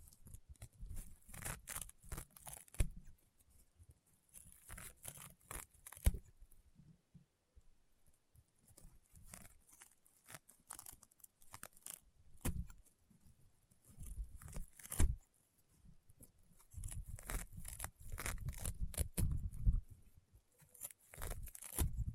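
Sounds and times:
crunchy popping slime being squeezed and pressed: 0.3s - 3.0s, 4.3s - 6.2s, 8.9s - 12.8s, 13.9s - 15.2s, 16.7s - 19.5s, 20.6s - 22.0s.

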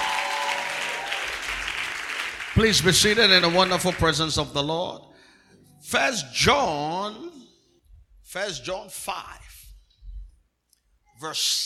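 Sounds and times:
audience clapping hands: 0.0s - 4.6s
speech: 2.6s - 5.1s, 5.8s - 7.4s, 8.3s - 9.6s, 11.2s - 11.6s.

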